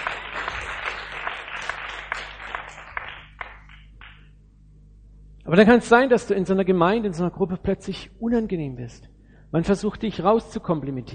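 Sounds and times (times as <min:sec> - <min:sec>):
audience applause: 0:00.0 - 0:04.2
speech: 0:05.5 - 0:11.1.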